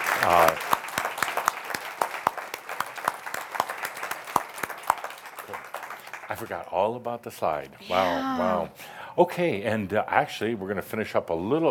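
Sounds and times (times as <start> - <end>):
audience applause: 0.0 - 6.6
speech: 0.2 - 0.7, 6.4 - 11.7.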